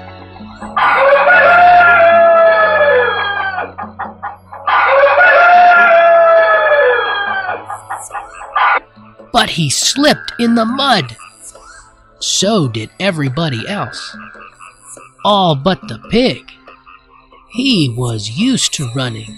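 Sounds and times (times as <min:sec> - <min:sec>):
hens clucking: 0:00.7 - 0:08.8, 0:09.4 - 0:16.8
rooster crowing: 0:00.8 - 0:03.9, 0:04.7 - 0:08.8
speech: 0:09.4 - 0:11.2, 0:12.2 - 0:14.4, 0:15.2 - 0:16.6, 0:17.5 - 0:19.3.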